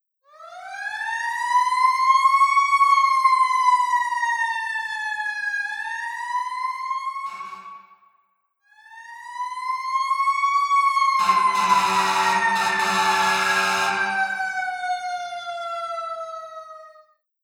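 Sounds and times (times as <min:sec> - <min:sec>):
fire truck in New York City: 0:00.4 - 0:08.0, 0:09.3 - 0:17.0.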